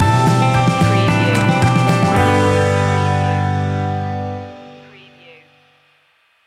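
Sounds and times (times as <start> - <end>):
folky music stinger: 0.0 - 4.4.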